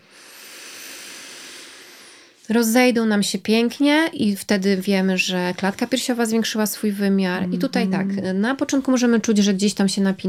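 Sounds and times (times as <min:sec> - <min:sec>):
long exhale during breathing exercise: 0:00.0 - 0:02.4
speech: 0:02.5 - 0:10.2.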